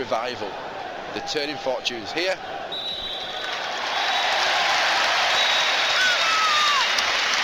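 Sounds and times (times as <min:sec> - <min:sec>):
speech: 0:00.0 - 0:02.6
football crowd cheering at full time: 0:00.4 - 0:07.4
thin whistles: 0:02.7 - 0:04.4, 0:05.3 - 0:06.8
crowd clapping: 0:03.4 - 0:07.4.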